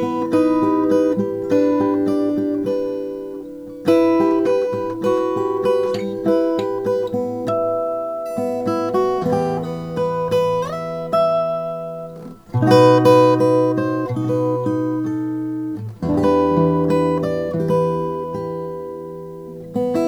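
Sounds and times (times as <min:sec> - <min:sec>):
2008 Collings 000 2HA custom guitar with Adirondack top: 0:00.0 - 0:20.0.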